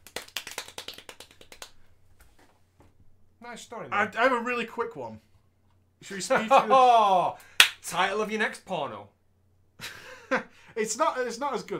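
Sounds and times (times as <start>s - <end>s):
golf clap: 0.0s - 1.8s, 7.4s - 7.8s
speech: 3.4s - 5.3s, 6.0s - 9.2s, 10.3s - 11.7s.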